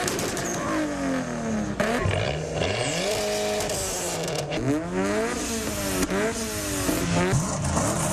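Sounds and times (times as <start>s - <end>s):
hoon's car engine revving and accelerating on suburban streets: 0.4s - 8.1s.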